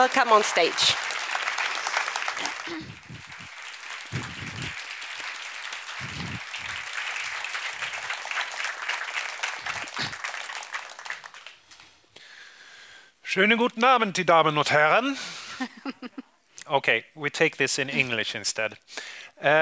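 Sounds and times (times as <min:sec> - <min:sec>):
speech: 0:00.0 - 0:01.1, 0:02.7 - 0:03.3, 0:13.3 - 0:19.6
audience applause at a book event: 0:00.0 - 0:12.0.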